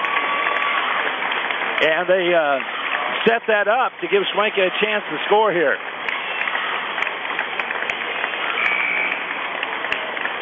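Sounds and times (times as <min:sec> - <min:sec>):
audience applause during basketball timeout: 0:00.0 - 0:10.4
speech: 0:01.8 - 0:05.9
faint whistle-like tone: 0:08.5 - 0:09.2.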